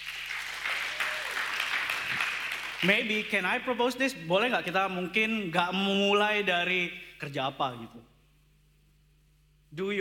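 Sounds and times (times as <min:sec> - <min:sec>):
crowd applauding: 0:00.0 - 0:03.1
speech: 0:02.8 - 0:08.1, 0:09.7 - 0:09.9.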